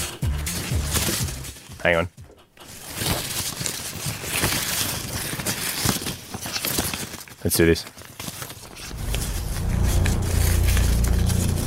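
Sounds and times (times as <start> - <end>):
paper slips rustling inside a hat: 0.5 - 11.6
speech: 1.8 - 2.2, 7.4 - 8.0
heavy low rumble: 8.7 - 11.6.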